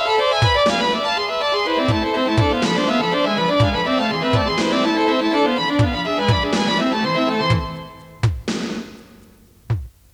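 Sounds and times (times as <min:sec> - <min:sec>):
violins playing classical arpeggios on tape: 0:00.0 - 0:08.4.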